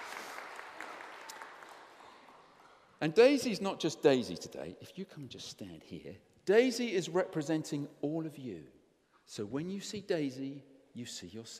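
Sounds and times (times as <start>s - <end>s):
crowd applauding: 0.0s - 2.5s
speech: 3.0s - 11.5s.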